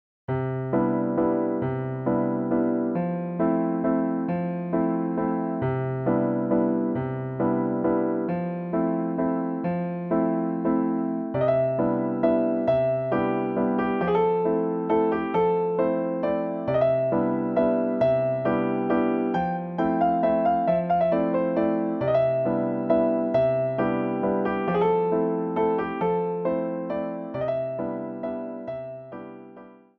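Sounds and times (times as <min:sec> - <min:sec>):
waltz music: 0:00.5 - 0:29.7.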